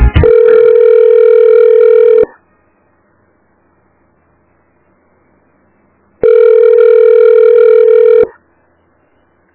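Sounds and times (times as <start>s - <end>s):
telephone line tones during a call transfer: 0.2s - 2.4s, 6.2s - 9.3s.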